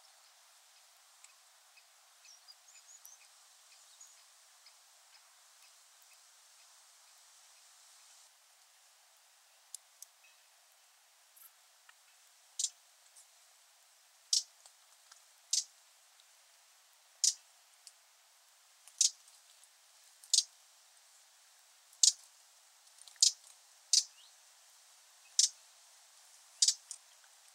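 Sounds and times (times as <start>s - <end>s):
Eurasian wren singing: 0.8s - 6.2s, 12.6s - 12.8s, 14.3s - 14.5s, 15.5s - 15.7s, 17.2s - 17.4s, 18.9s - 19.2s, 20.2s - 20.5s, 22.0s - 22.2s, 23.1s - 24.4s, 25.2s - 25.6s, 26.6s - 27.1s.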